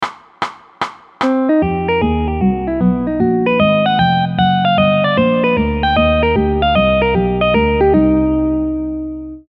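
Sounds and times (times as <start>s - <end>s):
triad chord: 1.4s - 9.4s.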